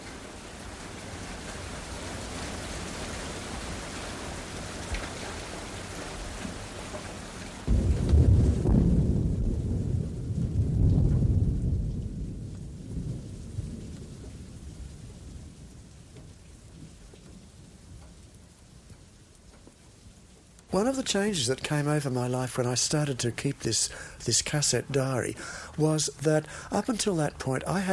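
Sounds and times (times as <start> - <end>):
steady rain: 0.0 - 27.9
thunder rumbling during a rainstorm: 7.6 - 17.8, 22.9 - 27.4
speech: 20.7 - 27.9.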